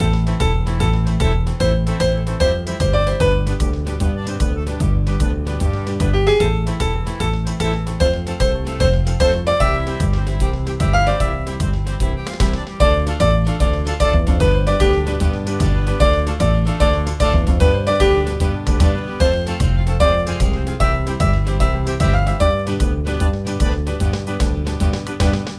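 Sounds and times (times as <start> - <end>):
music: 0.0 - 25.5.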